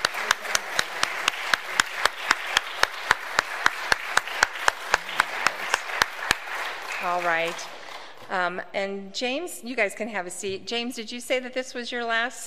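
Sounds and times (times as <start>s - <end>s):
audience applause: 0.0s - 8.3s
speech: 7.0s - 12.4s.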